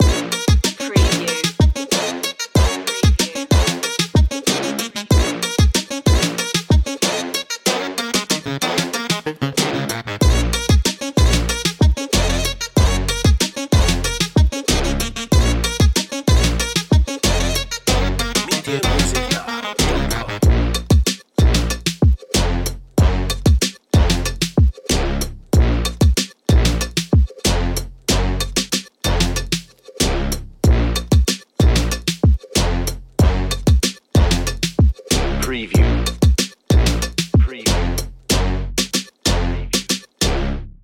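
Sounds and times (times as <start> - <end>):
bouncy whip loop: 0.0 - 40.3.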